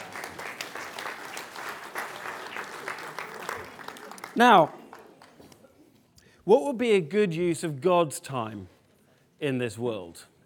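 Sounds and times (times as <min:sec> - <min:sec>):
audience applause: 0:00.0 - 0:05.6
speech: 0:04.4 - 0:04.8, 0:06.4 - 0:08.7, 0:09.4 - 0:10.3.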